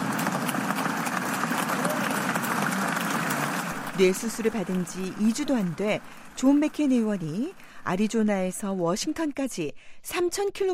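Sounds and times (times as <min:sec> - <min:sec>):
senators applauding in a chamber: 0:00.0 - 0:08.5
speech: 0:04.0 - 0:10.7.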